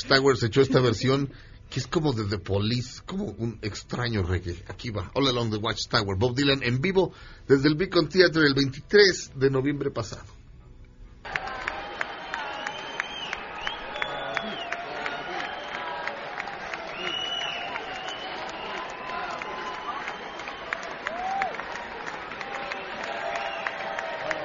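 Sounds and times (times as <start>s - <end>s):
speech: 0.0s - 10.4s
audience applause at live concert: 11.3s - 24.4s.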